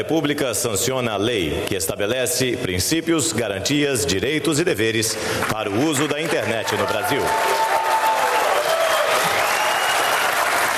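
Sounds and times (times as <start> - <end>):
speech: 0.0 - 7.6
thunderous applause from a large crowd: 5.2 - 10.7.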